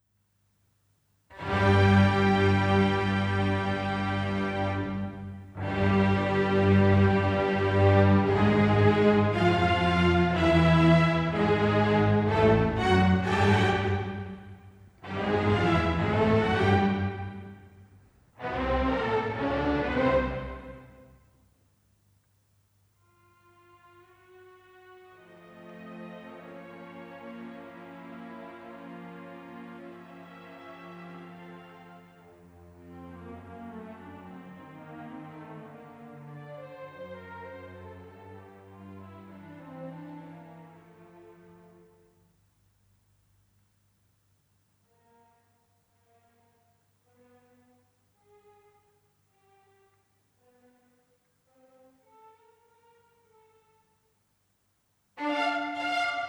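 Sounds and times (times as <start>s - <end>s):
fugue for string quartet in B flat: 1.3s - 17.7s, 18.4s - 21.1s, 23.2s - 42.0s, 55.2s - 56.2s.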